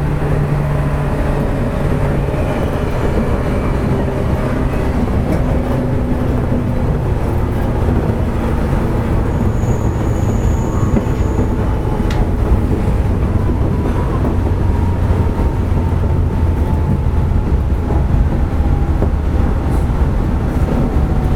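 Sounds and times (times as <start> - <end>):
415-series local train running on the Nippō Line: 0.0 - 21.3
high squeal: 9.1 - 11.8.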